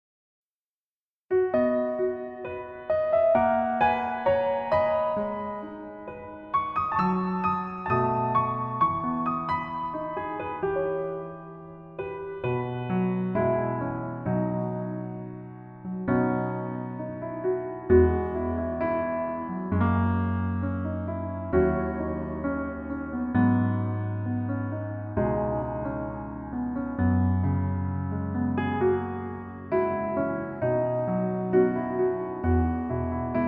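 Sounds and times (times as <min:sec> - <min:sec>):
piano melody backing track: 0:01.3 - 0:33.4.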